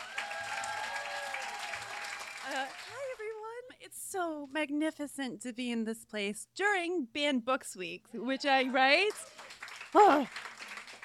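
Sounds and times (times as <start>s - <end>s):
audience applause welcoming author Lauren Groff in Miami: 0.0s - 3.4s, 8.8s - 11.0s
speech: 2.5s - 3.2s, 3.8s - 10.5s.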